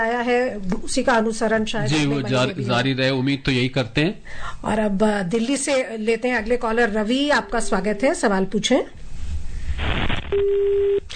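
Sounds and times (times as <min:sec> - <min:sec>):
speech: 0:00.0 - 0:09.0, 0:09.8 - 0:11.1
telephone busy tone after a caller's line drops: 0:10.3 - 0:11.0.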